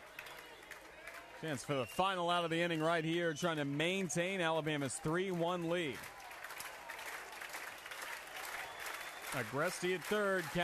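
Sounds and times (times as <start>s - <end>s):
crowd roaring and clapping at a college baseball stadium: 0.0s - 10.6s
speech: 1.4s - 6.2s, 9.3s - 10.6s.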